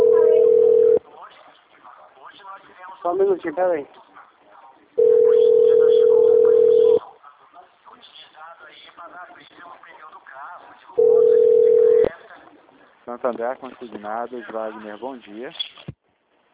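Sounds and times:
mobile phone ringing: 0:00.0 - 0:01.0, 0:05.0 - 0:07.0, 0:11.0 - 0:12.1
quiet talk: 0:00.0 - 0:15.8
speech: 0:03.0 - 0:04.0, 0:13.1 - 0:15.7.

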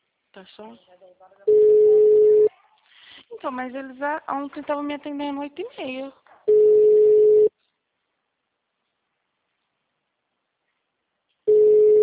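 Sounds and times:
speech: 0:00.4 - 0:01.9, 0:03.3 - 0:06.6
telephone ringback tone on an unanswered call: 0:01.5 - 0:02.5, 0:06.5 - 0:07.5, 0:11.5 - 0:12.0.

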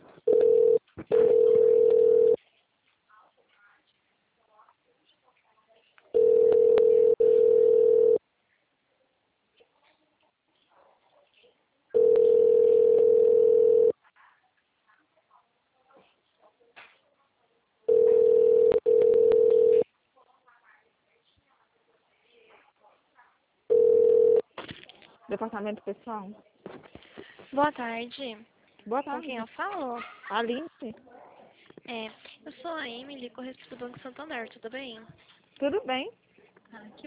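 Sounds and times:
telephone ringback tone while a call is being transferred: 0:00.3 - 0:02.4, 0:06.2 - 0:08.2, 0:12.0 - 0:13.9, 0:17.9 - 0:19.8, 0:23.7 - 0:24.4
speech: 0:25.4 - 0:26.5, 0:27.6 - 0:31.1, 0:31.9 - 0:36.2, 0:36.8 - 0:37.0.

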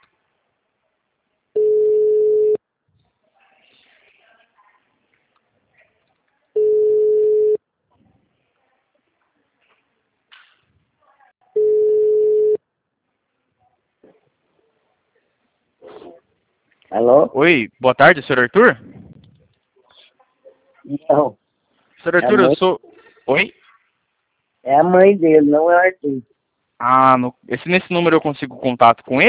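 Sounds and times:
telephone busy signal: 0:01.6 - 0:02.6, 0:06.6 - 0:07.6, 0:11.6 - 0:12.6
faint scattered noises: 0:02.6 - 0:29.2
speech: 0:17.0 - 0:18.9, 0:20.9 - 0:21.4, 0:22.0 - 0:23.6, 0:24.6 - 0:29.2.

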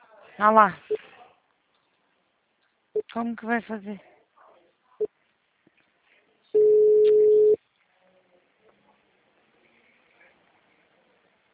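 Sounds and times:
speech: 0:00.4 - 0:01.0, 0:03.1 - 0:04.1
telephone beep after a dropped call: 0:06.6 - 0:07.6.

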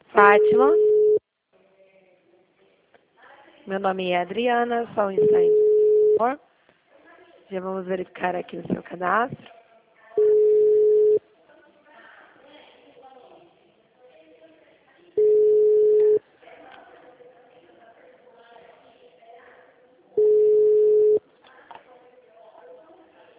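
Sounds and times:
speech: 0:00.2 - 0:00.9, 0:03.7 - 0:05.6, 0:06.2 - 0:06.5, 0:07.5 - 0:09.5
telephone busy signal beeps: 0:00.2 - 0:01.2, 0:05.2 - 0:06.2, 0:10.2 - 0:11.2, 0:15.2 - 0:16.2, 0:20.2 - 0:21.2.

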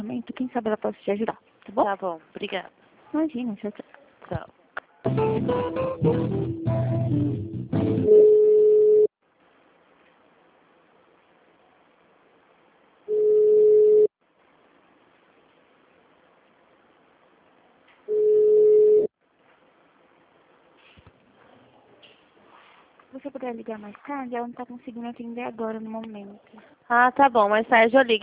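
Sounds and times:
speech: 0:00.1 - 0:07.5, 0:23.2 - 0:28.2
hold music during a call transfer: 0:05.0 - 0:08.1
telephone line beeps as a call is transferred: 0:08.1 - 0:09.1, 0:13.1 - 0:14.1, 0:18.1 - 0:19.1.

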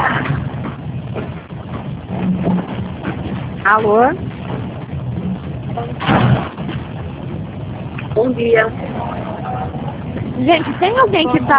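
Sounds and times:
car and wind noise through an open window: 0:00.0 - 0:11.5
speech: 0:03.7 - 0:04.3, 0:08.2 - 0:09.3, 0:10.4 - 0:11.5.

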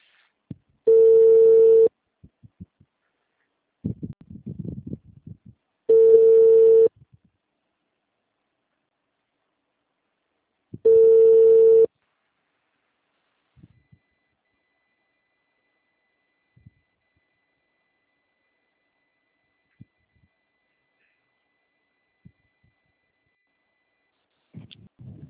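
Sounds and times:
outgoing phone call's ringback tone: 0:00.9 - 0:01.9, 0:05.9 - 0:06.9, 0:10.8 - 0:11.9.

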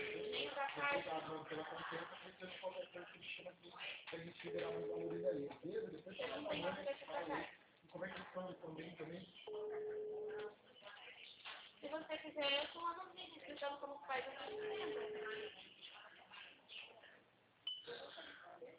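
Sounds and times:
phone call ringing tone: 0:00.0 - 0:00.5, 0:04.5 - 0:05.4, 0:09.5 - 0:10.5, 0:14.5 - 0:15.5
speech: 0:00.8 - 0:10.6, 0:11.8 - 0:15.6, 0:17.8 - 0:18.7.

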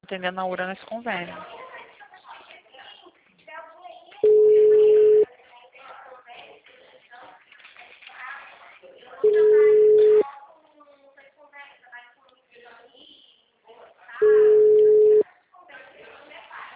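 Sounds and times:
speech: 0:00.1 - 0:01.7
phone ringback tone: 0:04.2 - 0:05.2, 0:09.2 - 0:10.2, 0:14.2 - 0:15.2.

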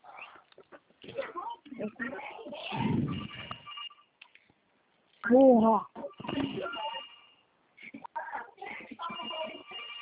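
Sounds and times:
speech: 0:01.2 - 0:03.3, 0:05.3 - 0:06.8
phone ringtone with an incoming call: 0:03.0 - 0:04.1, 0:06.1 - 0:07.5, 0:09.0 - 0:10.0.

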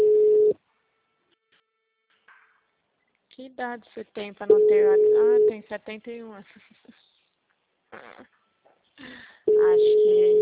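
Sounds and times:
telephone ringing tone of an unanswered call: 0:00.0 - 0:00.6, 0:04.5 - 0:05.6, 0:09.5 - 0:10.4
speech: 0:03.4 - 0:07.1, 0:07.9 - 0:08.4, 0:09.0 - 0:10.4.

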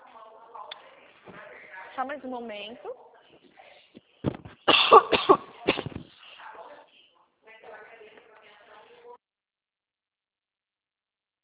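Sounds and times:
faint talk: 0:00.0 - 0:09.2
speech: 0:02.0 - 0:03.4
harsh coughing after choking: 0:04.6 - 0:06.1.

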